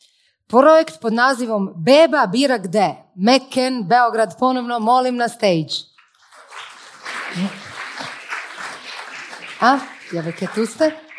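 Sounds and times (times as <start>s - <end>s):
speech: 0.5s - 5.9s, 7.3s - 7.6s, 9.6s - 11.0s
audience applause for a project at a finale event: 6.1s - 11.1s.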